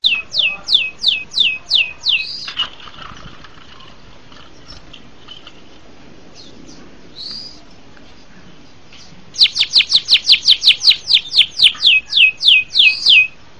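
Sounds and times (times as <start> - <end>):
bird singing high downslurred chirps and buzzy trills: 0.0 - 2.8, 6.3 - 13.5.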